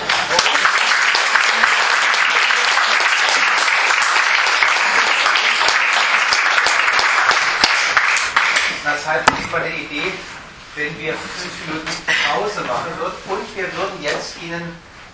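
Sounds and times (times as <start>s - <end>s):
audience applause after a reading: 0.0s - 8.8s
speech: 9.2s - 14.9s.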